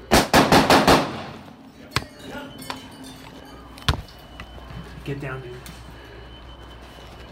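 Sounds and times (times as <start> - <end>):
gunshots fired from an upstairs window: 0.1 - 1.5
speech: 5.1 - 5.9.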